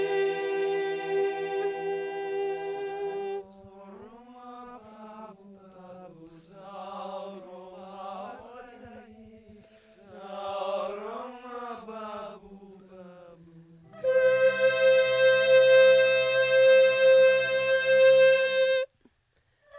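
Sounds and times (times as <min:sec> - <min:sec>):
alto melody: 0:00.0 - 0:03.6, 0:13.8 - 0:18.8.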